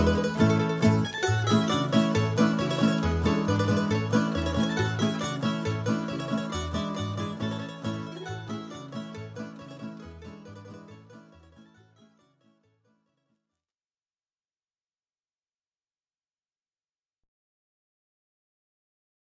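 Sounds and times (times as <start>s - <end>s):
Croatian wedding polka music: 0.0s - 11.6s.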